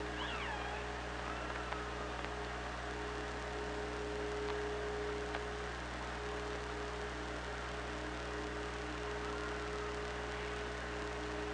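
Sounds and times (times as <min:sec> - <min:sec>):
hydrophone hiss: 0:00.0 - 0:11.5
low hum: 0:00.0 - 0:11.5
killer whale whistled curving tonal calls: 0:00.1 - 0:01.9.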